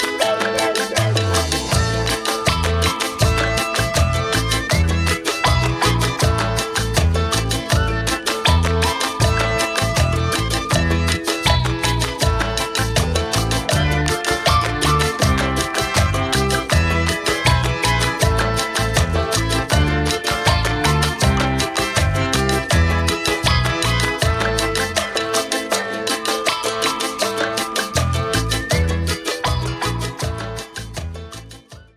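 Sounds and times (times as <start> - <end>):
cumbia music interlude: 0.0 - 31.9.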